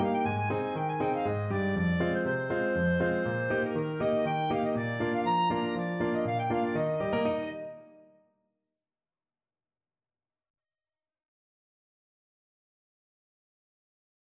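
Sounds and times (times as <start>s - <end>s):
clarinet playing a polska: 0.0s - 8.0s.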